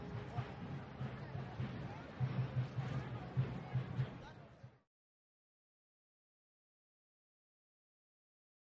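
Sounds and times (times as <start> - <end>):
parade ambience: 0.0 - 4.8.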